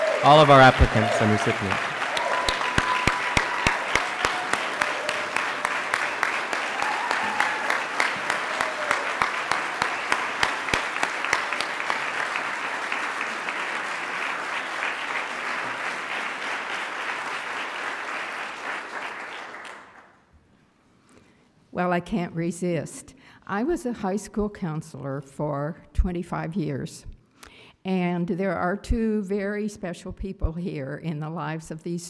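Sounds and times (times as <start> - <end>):
applause: 0.0 - 20.3
speech: 0.2 - 1.9, 22.0 - 27.1, 27.8 - 32.0.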